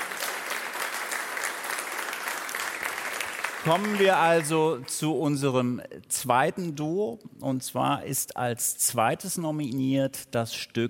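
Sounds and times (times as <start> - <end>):
audience applause: 0.0 - 4.8
speech: 3.6 - 10.8.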